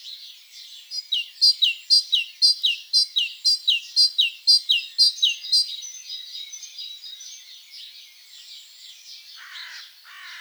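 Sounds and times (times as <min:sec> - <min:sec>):
great tit calls: 0:00.9 - 0:05.8.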